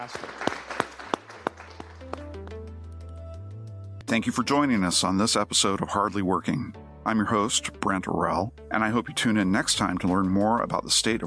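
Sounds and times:
speech: 0.0s - 0.6s, 4.1s - 11.2s
audience applause: 0.0s - 2.4s.

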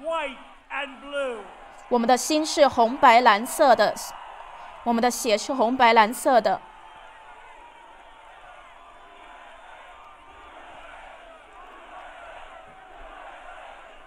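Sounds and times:
crowd chanting USA: 0.0s - 14.0s
speech: 0.2s - 4.2s, 4.8s - 6.7s.

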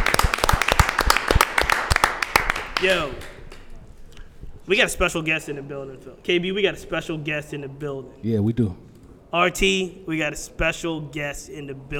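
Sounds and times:
clapping: 0.0s - 3.7s
speech: 2.8s - 3.3s, 4.7s - 11.9s.

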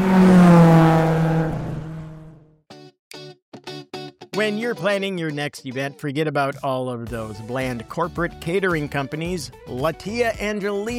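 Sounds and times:
Ferrari engine revving sound effect: 0.0s - 2.5s
speech: 4.4s - 10.9s.

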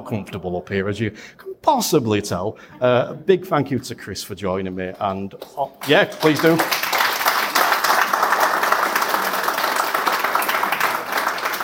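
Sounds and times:
speech: 0.0s - 6.9s
audience applause: 5.8s - 11.6s.

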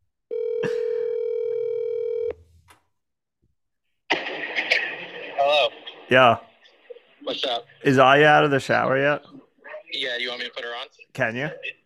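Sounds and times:
telephone ringback tone on an outgoing call: 0.3s - 2.4s
speech: 6.1s - 6.5s, 7.3s - 11.8s.

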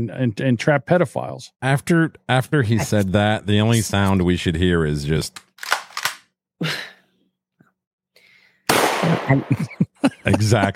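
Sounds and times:
speech: 0.0s - 5.4s, 6.6s - 6.9s, 9.0s - 10.7s
laughter: 2.6s - 4.2s, 9.0s - 10.7s
gunshots: 8.7s - 9.6s.

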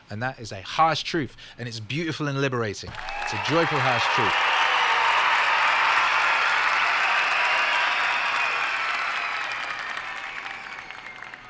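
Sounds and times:
speech: 0.1s - 4.6s
canned applause sound effect: 2.9s - 11.4s.

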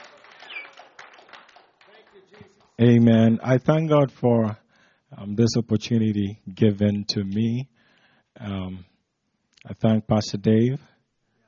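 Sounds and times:
audience clapping: 0.0s - 2.8s
speech: 2.8s - 4.6s, 5.2s - 7.7s, 8.4s - 8.9s, 9.6s - 10.9s.

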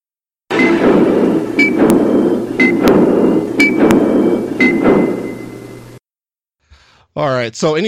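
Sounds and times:
ticking clock sound effect: 0.5s - 5.6s
speech: 7.2s - 7.8s.

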